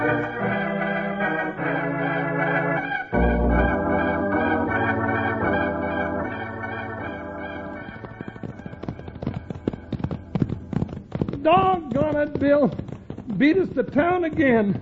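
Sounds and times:
steady music: 0.0 - 11.9
horses galloping off, one a white horse, in a Western drama: 5.2 - 14.7
speech: 13.4 - 14.7.

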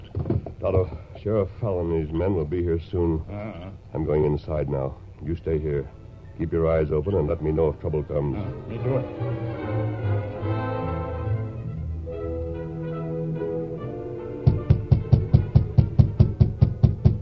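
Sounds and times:
speech: 0.6 - 10.6
orchestral music: 7.1 - 16.6
knocking on a rear door: 14.4 - 17.2.

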